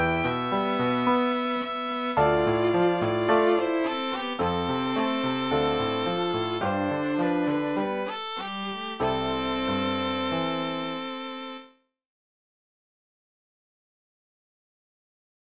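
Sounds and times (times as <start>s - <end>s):
piano trio playing: 0.0s - 11.4s.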